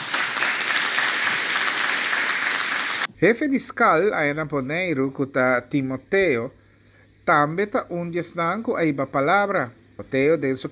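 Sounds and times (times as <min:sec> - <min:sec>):
audience applause: 0:00.0 - 0:03.1
speech: 0:03.2 - 0:06.6, 0:07.3 - 0:10.7.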